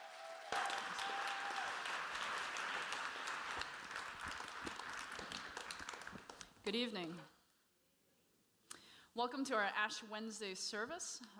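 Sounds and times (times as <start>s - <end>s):
church congregation clapping at an Ash Wednesday service: 0.0s - 6.6s
speech: 6.7s - 7.4s, 9.2s - 11.3s.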